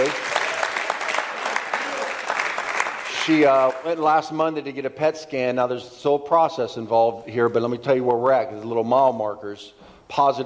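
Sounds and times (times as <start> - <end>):
audience applause: 0.0 - 3.9
speech: 3.2 - 10.4.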